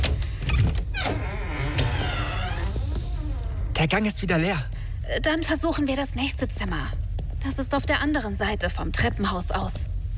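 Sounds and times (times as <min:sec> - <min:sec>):
door creaking as it is carefully opened: 0:00.0 - 0:03.9
speech: 0:03.8 - 0:10.0.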